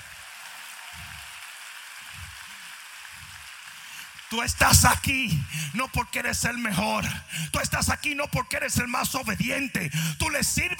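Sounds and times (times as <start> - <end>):
loud audience applause: 0.0 - 5.8
speech: 4.3 - 10.7.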